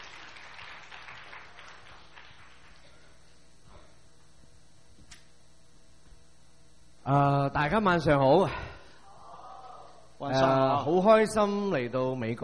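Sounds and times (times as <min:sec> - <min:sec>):
audience applause: 0:00.0 - 0:03.0
quiet hum: 0:00.0 - 0:12.4
speech: 0:07.1 - 0:08.6, 0:10.2 - 0:12.4.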